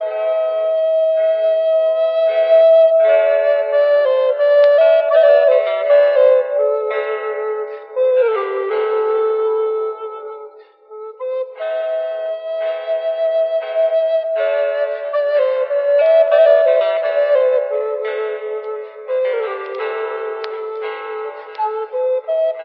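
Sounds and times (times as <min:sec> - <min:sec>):
flute: 0:00.0 - 0:22.6.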